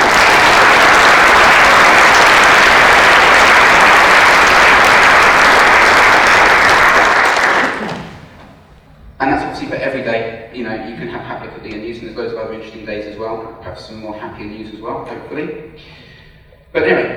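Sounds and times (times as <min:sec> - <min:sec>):
audience applause: 0:00.0 - 0:08.8
speech: 0:09.8 - 0:16.1, 0:16.7 - 0:17.1.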